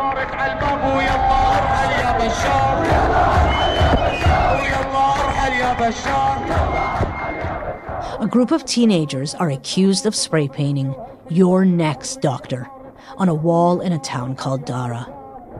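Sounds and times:
protest crowd chanting and shouting at a demonstration: 0.0 - 15.5
speech: 0.2 - 4.8, 5.4 - 15.2.

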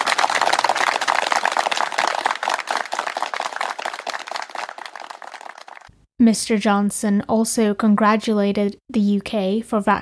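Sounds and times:
crowd clapping in a national clap: 0.0 - 6.0
speech: 6.2 - 10.0.

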